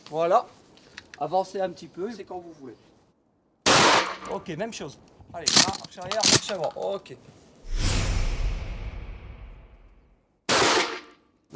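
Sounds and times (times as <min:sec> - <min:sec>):
speech: 0:00.1 - 0:00.6, 0:01.2 - 0:02.9, 0:04.2 - 0:07.8
rifle shots at a shooting range: 0:03.7 - 0:04.2, 0:10.5 - 0:11.1.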